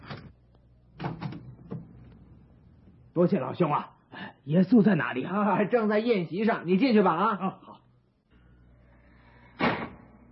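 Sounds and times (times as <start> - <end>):
door being unlatched and opened: 1.0 - 2.2
speech: 3.2 - 7.7.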